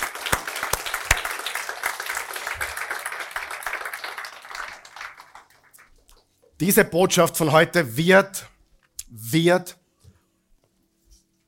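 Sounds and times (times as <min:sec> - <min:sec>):
audience applause: 0:00.0 - 0:05.8
speech: 0:06.6 - 0:08.5, 0:09.3 - 0:09.8.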